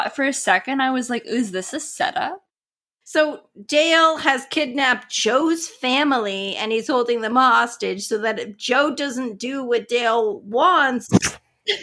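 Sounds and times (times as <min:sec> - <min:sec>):
speech: 0:00.1 - 0:02.4, 0:03.1 - 0:11.8
sneeze: 0:11.1 - 0:11.8.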